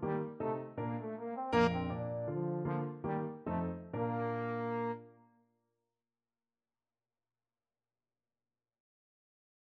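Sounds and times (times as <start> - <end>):
trombone playing baroque dance piece: 0.0 - 5.0.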